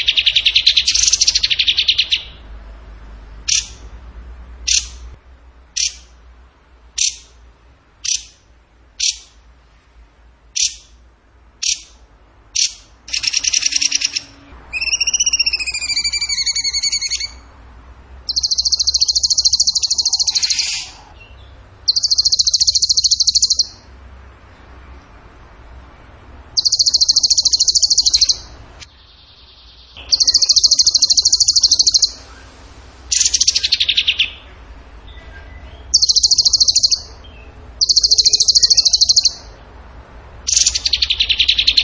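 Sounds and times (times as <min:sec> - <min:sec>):
songbird trilling: 0:00.0 - 0:02.4, 0:03.4 - 0:03.8, 0:04.6 - 0:05.0, 0:05.8 - 0:06.1, 0:07.0 - 0:07.3, 0:08.0 - 0:08.4, 0:09.0 - 0:09.4, 0:10.6 - 0:11.0, 0:11.6 - 0:12.0, 0:12.6 - 0:17.5, 0:18.3 - 0:23.8, 0:26.5 - 0:28.6, 0:29.2 - 0:32.5, 0:33.1 - 0:34.5, 0:35.4 - 0:39.6, 0:40.5 - 0:41.8.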